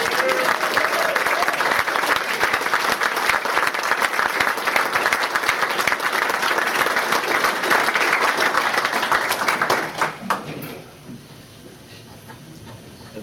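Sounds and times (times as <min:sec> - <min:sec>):
audience applause welcoming a guest speaker: 0:00.0 - 0:10.5.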